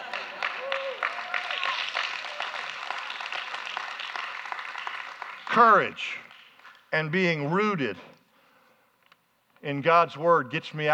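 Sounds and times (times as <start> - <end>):
audience clapping: 0.0 - 7.2
speech: 5.6 - 6.3, 6.9 - 8.1, 9.6 - 10.9.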